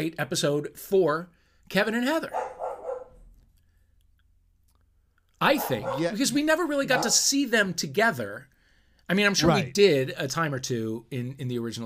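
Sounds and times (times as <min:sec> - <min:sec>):
speech: 0:00.0 - 0:02.6, 0:05.4 - 0:08.5, 0:09.1 - 0:11.8
dog barking: 0:02.3 - 0:03.2, 0:05.5 - 0:07.2.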